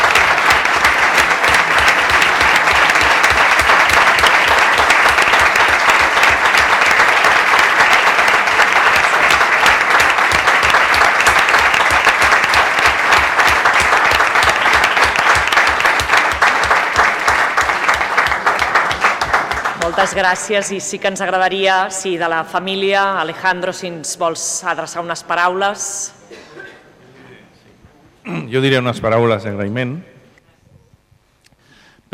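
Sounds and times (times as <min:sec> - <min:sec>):
audience applause: 0:00.0 - 0:20.6
speech: 0:20.0 - 0:26.2, 0:28.5 - 0:30.1.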